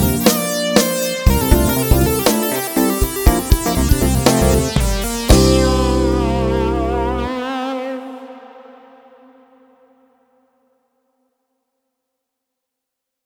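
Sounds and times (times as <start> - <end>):
band playing: 0.0 - 7.4
little synth solo: 0.0 - 7.6.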